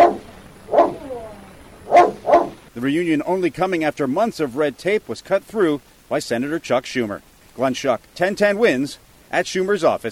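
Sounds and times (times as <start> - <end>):
dog barking reunited with its owner: 0.0 - 1.0, 1.9 - 2.6
dog whining: 0.0 - 2.6
speech: 2.8 - 10.0.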